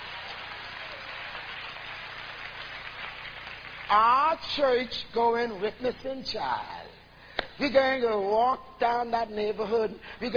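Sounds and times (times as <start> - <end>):
audience clapping hands: 0.0 - 4.3
speech: 3.9 - 7.0, 7.6 - 10.3.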